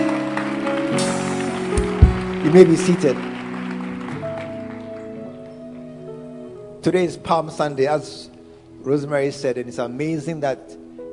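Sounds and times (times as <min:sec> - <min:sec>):
audience clapping: 0:00.0 - 0:05.8
speech: 0:02.5 - 0:03.3, 0:06.8 - 0:10.8.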